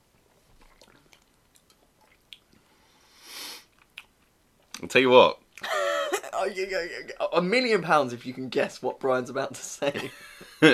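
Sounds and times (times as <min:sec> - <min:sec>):
wet chewing and biting on a juicy food during a tasting: 0:00.0 - 0:02.6, 0:03.7 - 0:04.8
speech: 0:04.8 - 0:05.4, 0:06.4 - 0:10.7
laughter: 0:05.6 - 0:07.2, 0:09.8 - 0:10.7.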